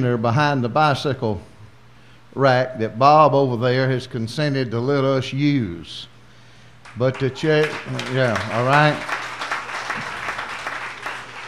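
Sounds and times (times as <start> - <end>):
speech: 0.0 - 1.5, 2.3 - 6.1, 6.9 - 9.2
group applauding to thank a man for lending a storage container: 6.8 - 11.4.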